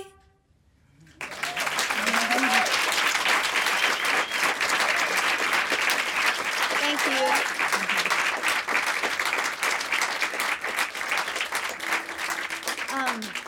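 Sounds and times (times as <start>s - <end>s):
audience applause after a song: 1.1s - 13.4s
brief cheers and voices: 1.4s - 2.8s.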